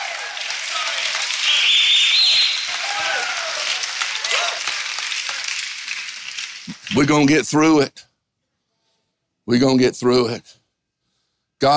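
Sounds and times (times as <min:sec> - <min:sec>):
audience clapping hands: 0:00.0 - 0:07.4
speech: 0:07.0 - 0:08.1, 0:09.5 - 0:10.6, 0:11.6 - 0:11.7.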